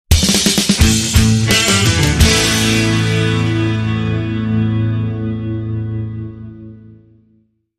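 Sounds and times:
blues rock ending: 0.1s - 7.2s.

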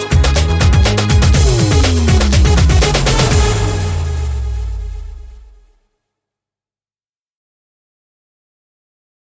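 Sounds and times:
short trance rhythm: 0.0s - 5.6s.

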